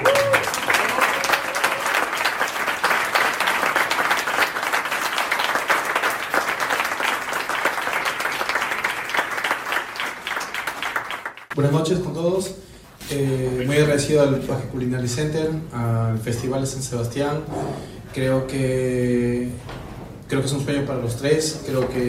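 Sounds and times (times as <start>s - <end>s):
audience applause: 0.0s - 11.6s
speech: 11.6s - 19.7s, 20.3s - 22.0s.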